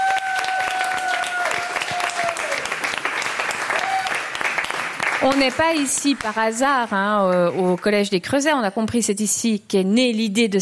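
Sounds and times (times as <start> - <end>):
audience applause: 0.0 - 7.8
speech: 5.2 - 10.5.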